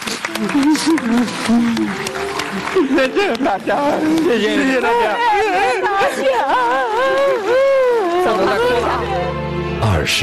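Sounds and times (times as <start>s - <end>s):
applause: 0.0s - 5.4s
laughter: 0.3s - 9.3s
speech: 0.3s - 10.2s.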